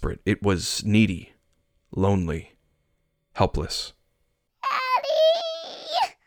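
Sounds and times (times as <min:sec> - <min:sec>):
speech: 0:00.0 - 0:01.3, 0:01.9 - 0:02.5, 0:03.4 - 0:04.0
little girl crying: 0:04.6 - 0:06.2.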